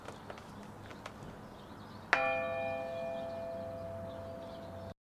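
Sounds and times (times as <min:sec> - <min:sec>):
bell ringing: 0:02.2 - 0:05.0.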